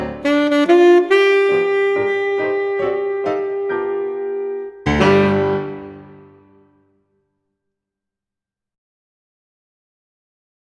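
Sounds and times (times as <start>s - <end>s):
saxophone: 0.1s - 6.6s.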